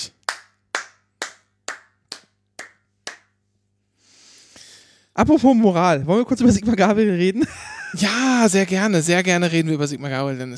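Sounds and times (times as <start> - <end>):
hand clapping: 0.0 - 3.4
speech: 5.2 - 10.5.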